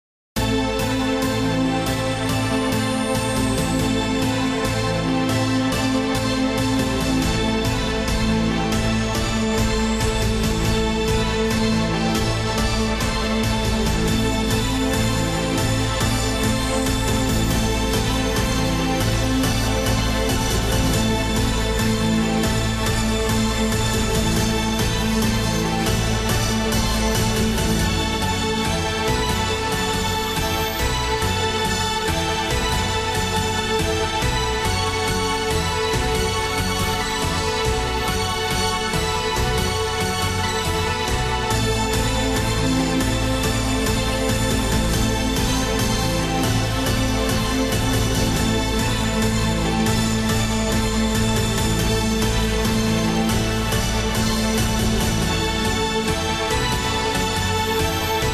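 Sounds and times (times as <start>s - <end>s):
sci-fi space adventure soundtrack music: 0.4s - 58.3s.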